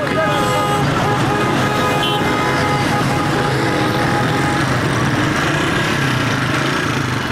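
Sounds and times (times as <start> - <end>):
convoy of military vehicles including tanks and Ranger vehicles roaring through city traffic: 0.0 - 7.3.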